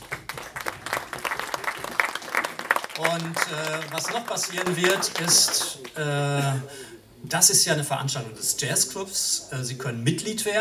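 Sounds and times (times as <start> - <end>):
audience applause: 0.0 - 6.0
speech: 3.0 - 10.5.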